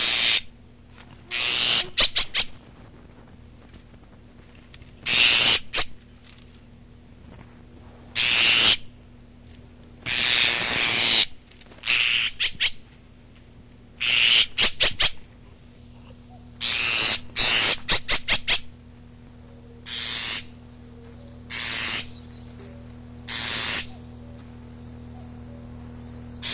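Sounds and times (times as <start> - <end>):
azure tit hissing calls: 0.0 - 0.5, 1.3 - 2.5, 5.0 - 6.0, 8.2 - 8.9, 10.0 - 12.8, 14.0 - 15.2, 16.6 - 18.7, 19.8 - 20.6, 21.5 - 22.4, 23.3 - 24.1, 26.4 - 26.5
low steady hum: 0.0 - 26.5.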